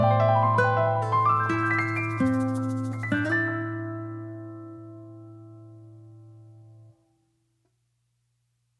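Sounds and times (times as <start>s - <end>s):
bossa nova music: 0.0s - 5.6s.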